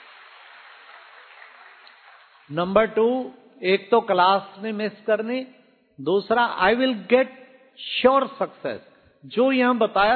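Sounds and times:
audience clapping: 0.0s - 2.5s
speech: 2.5s - 10.1s.

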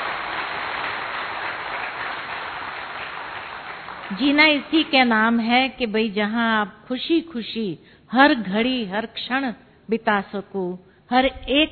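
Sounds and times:
loud audience clapping: 0.0s - 5.2s
speech: 4.1s - 11.7s.

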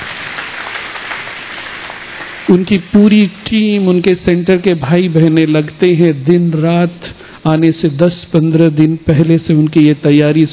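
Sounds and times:
audience applause: 0.0s - 2.5s
speech: 2.5s - 10.5s.

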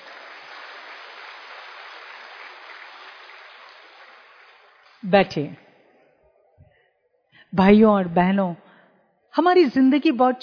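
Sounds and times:
applause: 0.0s - 5.1s
speech: 5.0s - 5.6s, 7.5s - 8.6s, 9.4s - 10.4s.

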